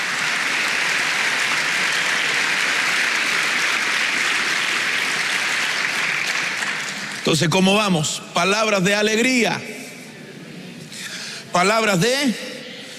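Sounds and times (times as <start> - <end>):
audience clapping hands: 0.0 - 7.6
speech: 7.3 - 9.7, 11.6 - 12.4.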